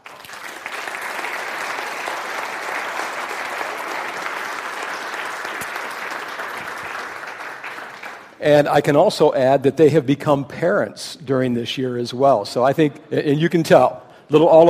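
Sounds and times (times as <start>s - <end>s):
church congregation applauding to welcome returning guests: 0.0s - 8.4s
speech: 8.4s - 14.6s.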